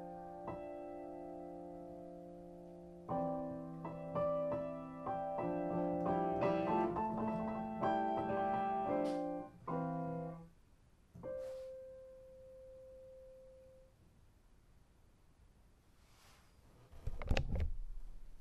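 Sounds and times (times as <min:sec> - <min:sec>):
piano: 0:00.0 - 0:14.0.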